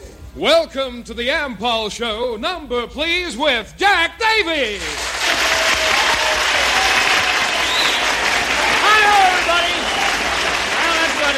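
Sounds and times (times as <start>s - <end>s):
speech: 0.4s - 5.1s
crowd applauding: 4.8s - 11.3s
audience whoops and calls: 4.9s - 11.3s.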